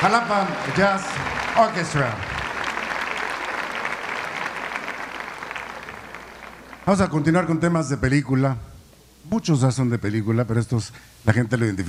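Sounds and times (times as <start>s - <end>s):
speech: 0.0s - 2.3s, 6.9s - 11.8s
audience applause for an orchestra: 0.0s - 7.4s.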